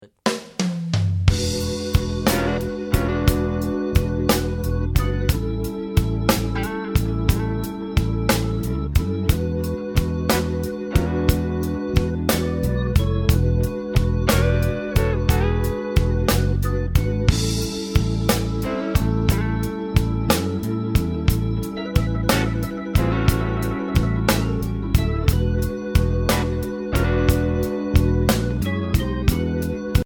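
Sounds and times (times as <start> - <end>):
12 bar blues beat: 0.0 - 30.0.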